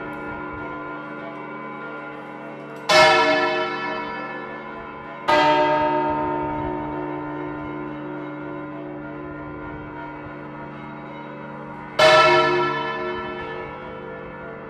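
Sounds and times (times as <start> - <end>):
bell: 0.0 - 14.6.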